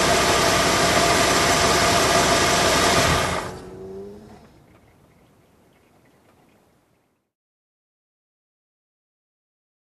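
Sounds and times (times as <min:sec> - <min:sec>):
car approaching and parking: 0:00.0 - 0:06.4.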